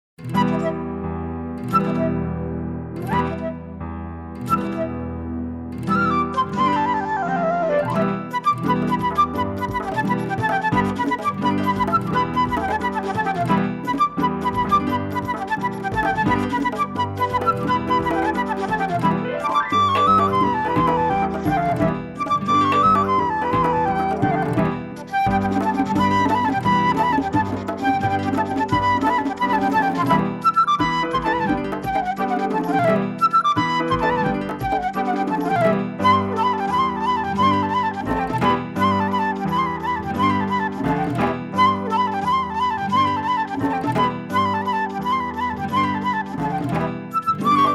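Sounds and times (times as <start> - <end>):
flute: 0.2 - 47.7.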